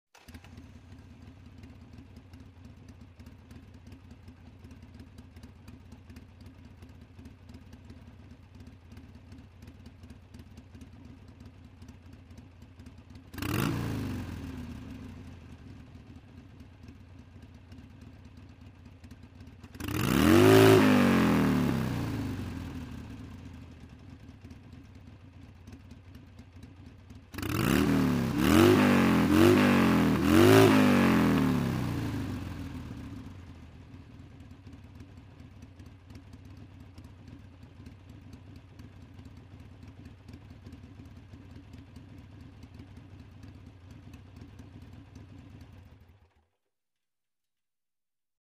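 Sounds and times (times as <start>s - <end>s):
motorcycle starting and revving: 0.2s - 2.6s, 12.8s - 16.3s, 19.5s - 23.9s, 27.2s - 33.8s.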